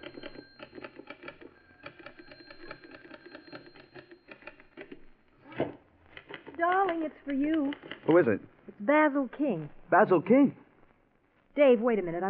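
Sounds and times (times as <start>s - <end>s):
typewriter clattering while typing a radio script: 0.0s - 5.1s, 6.1s - 8.4s
speech: 6.6s - 10.6s, 11.6s - 12.2s.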